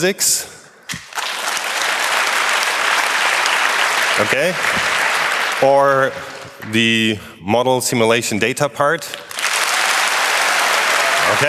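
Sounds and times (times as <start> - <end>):
speech: 0.0 - 0.6, 4.2 - 5.0, 5.6 - 9.3
audience applause: 1.0 - 6.5, 9.3 - 11.4.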